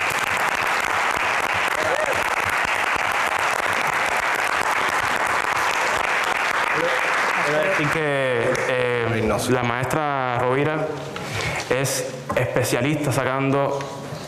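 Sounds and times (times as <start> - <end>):
audience applause: 0.0 - 9.0
speech: 9.4 - 11.1, 11.7 - 14.0.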